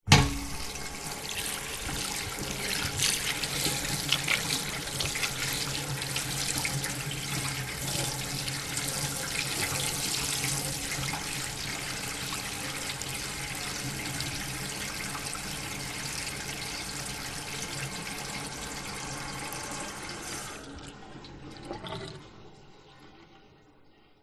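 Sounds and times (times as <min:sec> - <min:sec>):
hands washing: 0:00.1 - 0:18.3
public toilet push tap faucet running: 0:00.1 - 0:20.8.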